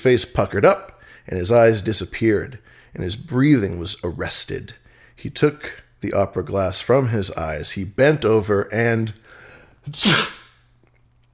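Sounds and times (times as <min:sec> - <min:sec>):
speech: 0:00.0 - 0:10.4
man sneezing: 0:09.8 - 0:10.6.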